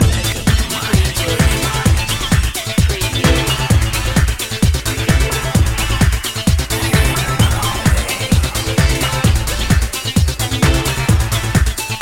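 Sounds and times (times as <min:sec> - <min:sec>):
music loop: 0:00.0 - 0:11.9.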